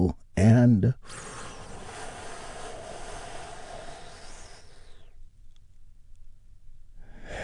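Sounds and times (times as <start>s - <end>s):
deep slow breathing during a guided meditation: 1.0s - 5.3s, 7.0s - 7.4s.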